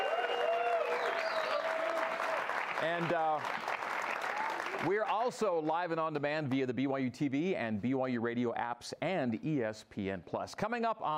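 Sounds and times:
live studio audience applause at a televised basketball program: 0.0s - 5.1s
speech: 2.8s - 3.6s, 4.8s - 11.1s.

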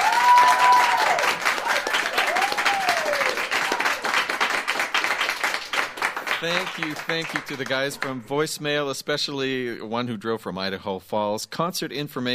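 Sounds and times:
studio audience clapping: 0.0s - 8.3s
speech: 6.4s - 12.3s.

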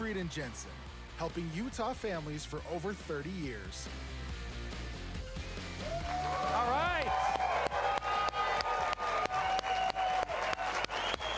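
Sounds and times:
speech: 0.2s - 4.3s
studio crowd cheering: 5.6s - 11.3s.

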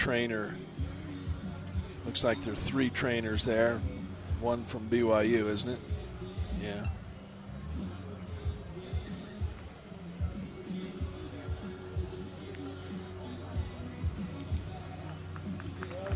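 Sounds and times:
speech: 0.0s - 0.8s, 2.0s - 6.0s, 6.6s - 7.0s
low rumble of stadium crowd voices: 0.0s - 16.1s
stadium crowd clapping: 15.0s - 16.1s.

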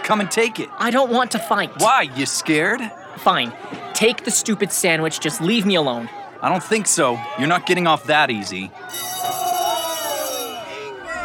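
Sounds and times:
murmur of voices: 0.0s - 11.2s
speech: 0.1s - 9.2s
school bell ringing: 8.9s - 11.2s.

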